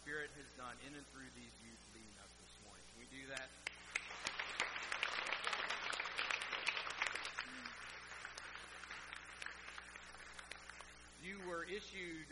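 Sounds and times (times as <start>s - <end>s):
speech: 0.0s - 6.3s, 11.2s - 12.3s
audience applause: 3.8s - 10.9s.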